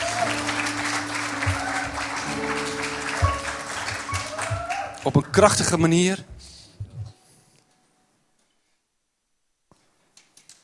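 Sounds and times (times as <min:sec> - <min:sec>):
audience applause: 0:00.0 - 0:05.8
speech: 0:05.0 - 0:06.3.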